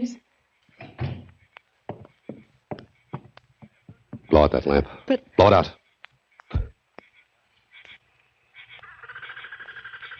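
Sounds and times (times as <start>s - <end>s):
door being shut: 0.8s - 1.3s
speech: 4.4s - 5.8s.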